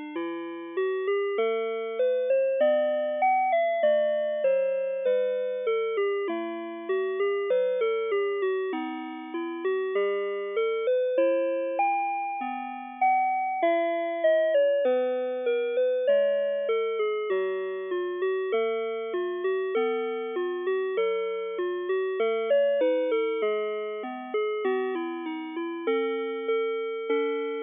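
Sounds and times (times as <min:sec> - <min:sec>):
telephone hold music: 0:00.0 - 0:27.6.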